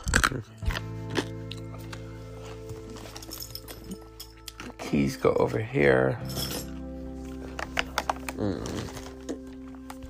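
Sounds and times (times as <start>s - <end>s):
Ricola lozenges being chewed: 0.0s - 2.2s, 7.6s - 10.0s
speech: 0.3s - 0.6s, 4.9s - 6.5s.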